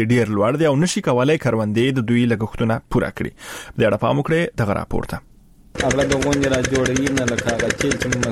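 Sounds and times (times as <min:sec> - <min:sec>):
speech: 0:00.0 - 0:08.2
diesel generator driving a well water pump in Dand district, Kandahar: 0:05.8 - 0:08.2.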